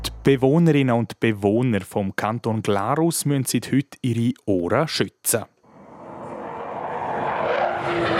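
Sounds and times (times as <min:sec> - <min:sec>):
speech: 0:00.3 - 0:05.5
airplanes flying at an air show: 0:05.7 - 0:08.1
whining tonal note: 0:05.7 - 0:08.1.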